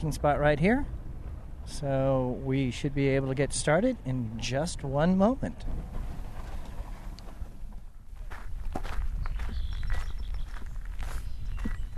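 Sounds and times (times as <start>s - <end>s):
speech: 0.0s - 1.0s, 1.7s - 6.1s
low rumble: 0.0s - 11.9s
footsteps walking from a parking lot to the wetlands: 8.1s - 11.9s.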